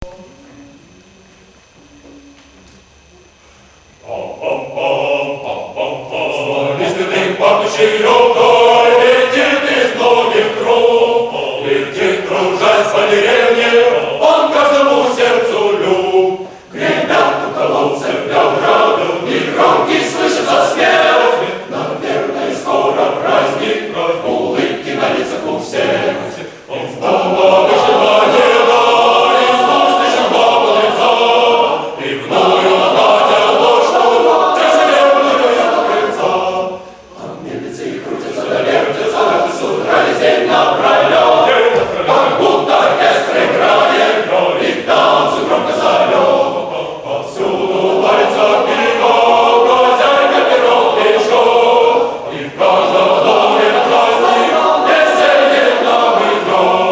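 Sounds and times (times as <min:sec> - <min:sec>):
male choir singing live: 0:04.0 - 0:56.9.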